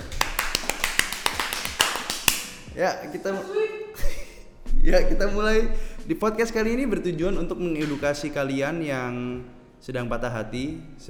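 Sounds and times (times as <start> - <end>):
clapping welcome: 0.0 - 2.7
speech: 2.8 - 4.1, 4.8 - 11.0
laughter: 3.3 - 4.4.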